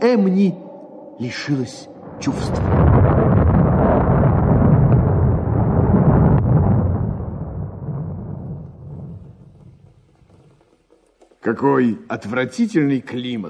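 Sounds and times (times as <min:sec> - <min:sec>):
speech: 0:00.0 - 0:04.2, 0:11.4 - 0:13.4
deep heavy thunder rumble: 0:00.0 - 0:10.3
deafening thunderclap: 0:01.9 - 0:10.4.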